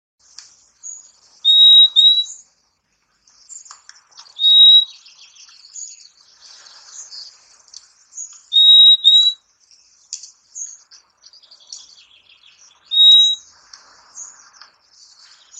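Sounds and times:
purple-throated euphonia whistling clear rising high notes: 0:01.4 - 0:02.4, 0:04.4 - 0:05.1, 0:08.5 - 0:09.4, 0:12.8 - 0:13.4.

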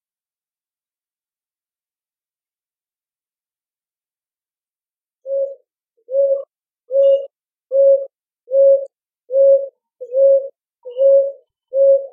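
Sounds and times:
Rolinha roxa calling: 0:05.2 - 0:12.1.

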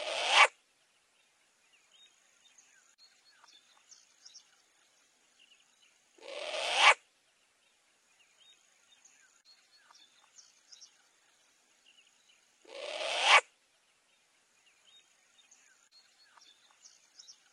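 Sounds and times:
short-eared owl screeching: 0:00.0 - 0:00.5, 0:06.2 - 0:07.0, 0:12.7 - 0:13.4.

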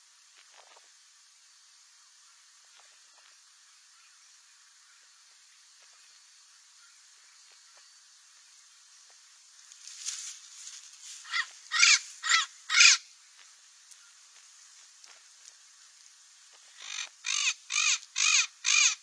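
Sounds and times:
Cape parrot squawking: 0:11.3 - 0:13.0, 0:16.8 - 0:19.0.

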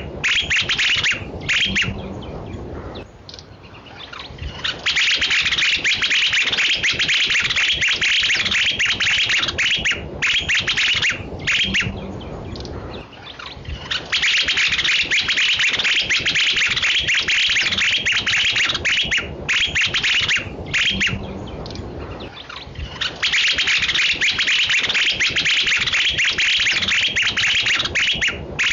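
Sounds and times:
alegrinho balanca rabo bird song: 0:00.0 - 0:28.7.

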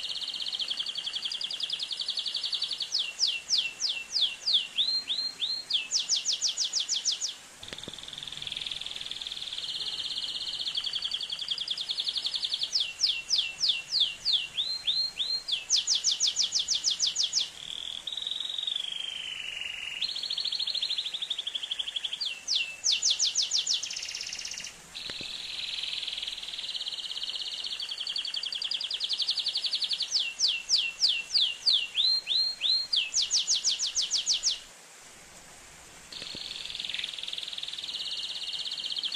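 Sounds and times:
Atlantic canary song: 0:00.0 - 0:34.7, 0:36.1 - 0:39.1
faint clicks: 0:07.6 - 0:08.1, 0:36.1 - 0:37.1.

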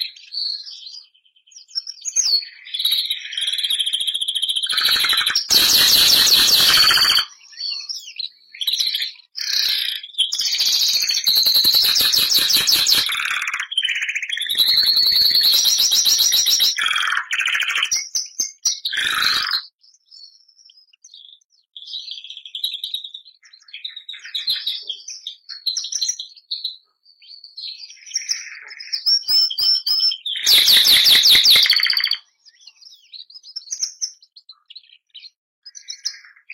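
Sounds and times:
Bernois canary singing: 0:02.7 - 0:19.7, 0:27.9 - 0:32.8.

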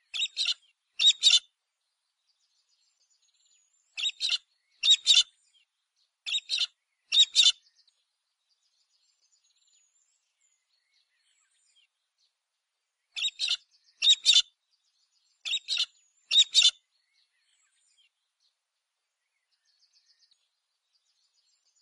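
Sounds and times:
galah cockatoo calling: 0:00.1 - 0:01.4, 0:04.0 - 0:05.3, 0:06.3 - 0:07.6, 0:13.2 - 0:14.4.

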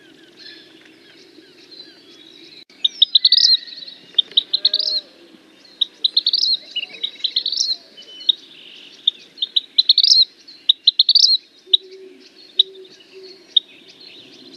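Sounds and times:
vermilion flycatcher singing: 0:00.0 - 0:14.5.

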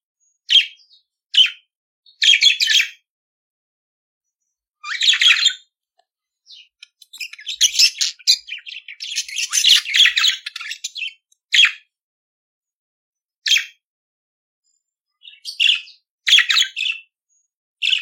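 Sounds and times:
budgerigar chattering song: 0:00.5 - 0:03.0, 0:04.8 - 0:05.7, 0:06.5 - 0:11.9, 0:15.2 - 0:17.1, 0:17.8 - 0:18.0.

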